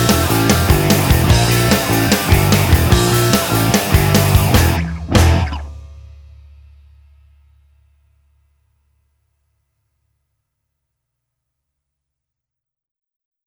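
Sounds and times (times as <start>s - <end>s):
rock music: 0.0s - 5.7s.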